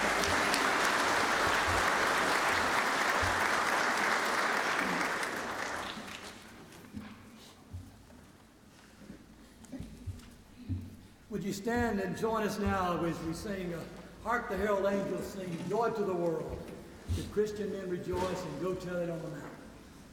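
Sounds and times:
audience applause: 0:00.0 - 0:06.7
speech: 0:11.4 - 0:19.5.

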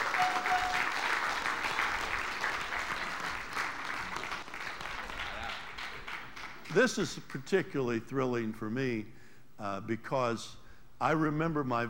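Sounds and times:
crowd applause: 0:00.0 - 0:06.8
speech: 0:06.8 - 0:11.8.

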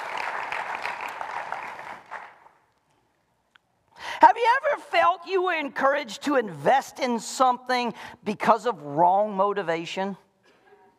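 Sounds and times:
audience applause for a graduate: 0:00.0 - 0:02.5
speech: 0:04.2 - 0:10.2.

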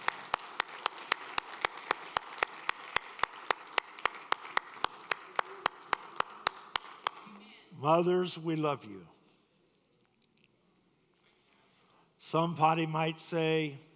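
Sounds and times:
audience clapping: 0:00.0 - 0:07.4
speech: 0:07.8 - 0:09.2, 0:12.3 - 0:13.9.

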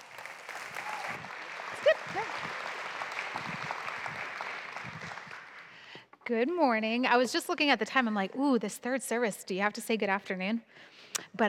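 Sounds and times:
audience applause: 0:00.0 - 0:05.9
speech: 0:06.3 - 0:11.4.

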